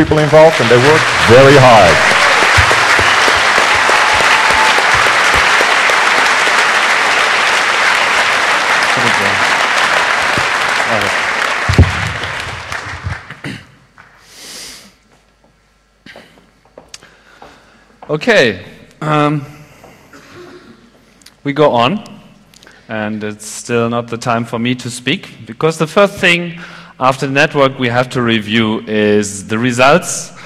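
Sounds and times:
speech: 0.0 - 2.2, 18.1 - 19.5, 21.4 - 22.2, 22.9 - 30.4
large audience clapping: 0.0 - 14.2.

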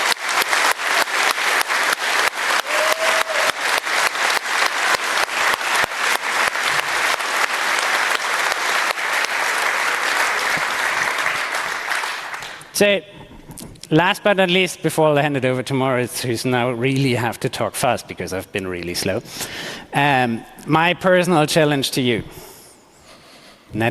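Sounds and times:
round of applause: 0.0 - 12.7
speech: 12.8 - 13.2, 13.9 - 22.5.

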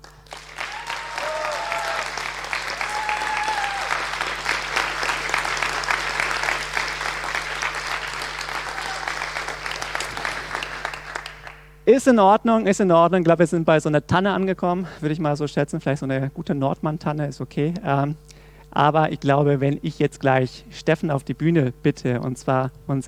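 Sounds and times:
audience applause: 0.0 - 11.8
speech: 11.9 - 23.0.

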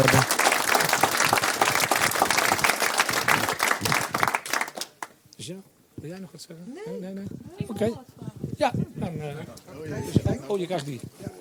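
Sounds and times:
audience applause: 0.0 - 5.1
speech: 5.5 - 11.2.

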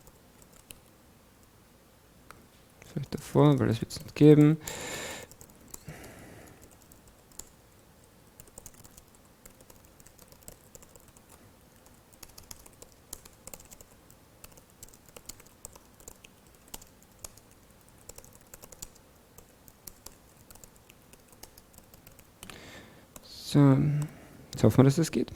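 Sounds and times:
typing code on a computer keyboard: 0.0 - 0.9, 5.3 - 22.5
speech: 2.9 - 5.0, 24.7 - 25.3.

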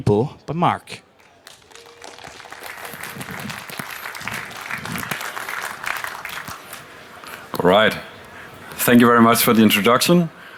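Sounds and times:
speech: 0.0 - 1.0, 7.6 - 8.1, 8.8 - 10.4
audience applause: 1.2 - 7.5.

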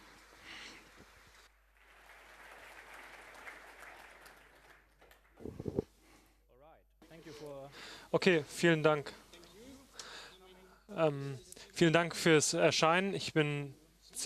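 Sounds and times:
audience applause: 0.0 - 5.8
speech: 7.4 - 9.2, 11.0 - 14.2.

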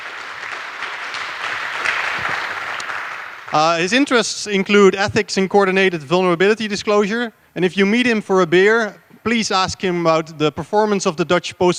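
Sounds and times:
audience applause: 0.0 - 4.2
speech: 3.5 - 11.7.

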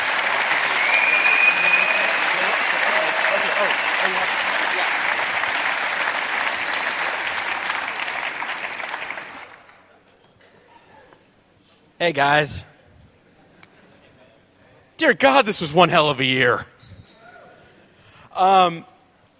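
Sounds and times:
Chaos Communication Congress crowd applause for a speaker: 0.0 - 9.9
speech: 12.0 - 12.7, 15.0 - 16.7, 18.4 - 18.9.

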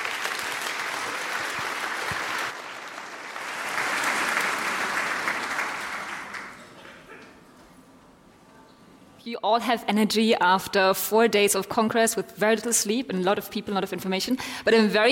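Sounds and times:
large audience applause: 0.0 - 7.2
speech: 9.2 - 15.0.

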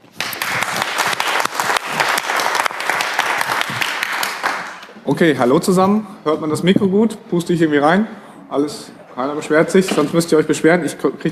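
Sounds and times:
audience applause before a talk on Linux kernel development: 0.0 - 4.9
speech: 5.1 - 11.3.

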